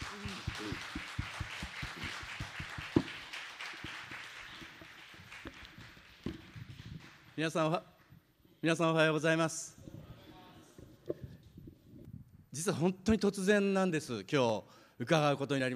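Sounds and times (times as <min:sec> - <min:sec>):
audience applause: 0:00.0 - 0:07.4
speech: 0:07.4 - 0:07.9, 0:08.6 - 0:09.8, 0:12.6 - 0:15.7.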